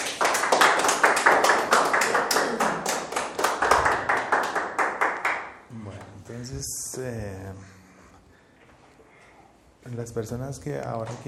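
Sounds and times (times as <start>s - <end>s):
rhythmic audience clapping: 0.0s - 5.7s
speech: 9.9s - 11.2s.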